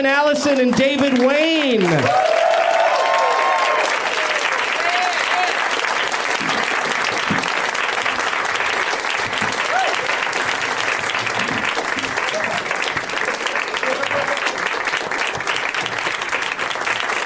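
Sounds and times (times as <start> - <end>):
speech: 0.0 - 2.4
audience applause: 0.5 - 17.2
faint scattered voices and cheers: 1.4 - 5.8, 9.6 - 10.2
laughter: 12.1 - 14.7.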